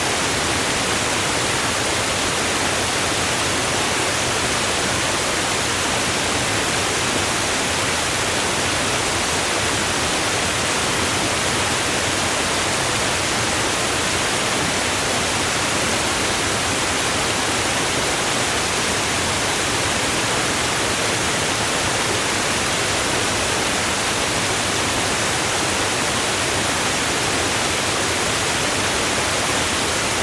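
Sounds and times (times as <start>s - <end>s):
waterfall river flowing: 0.0s - 30.2s.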